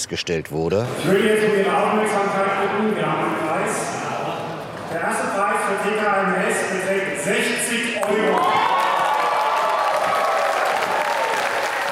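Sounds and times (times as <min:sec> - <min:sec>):
speech: 0:00.0 - 0:08.7
crowd cheering: 0:08.0 - 0:11.8.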